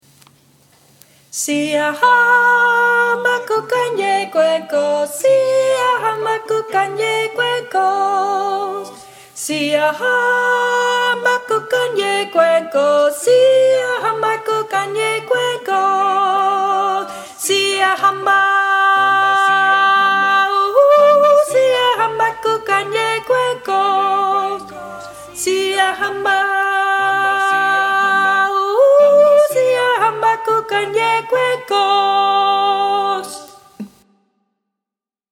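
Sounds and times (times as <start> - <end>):
soprano singing: 1.4 - 34.0.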